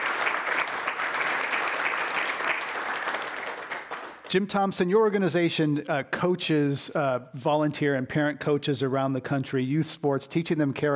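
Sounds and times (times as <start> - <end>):
audience applause: 0.0 - 4.3
speech: 4.3 - 10.9.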